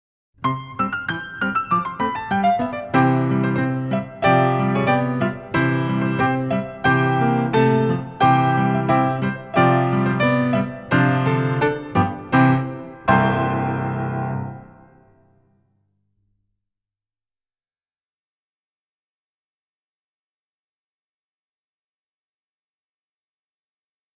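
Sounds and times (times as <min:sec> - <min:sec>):
petit allegro solo piece: 0:00.4 - 0:15.2.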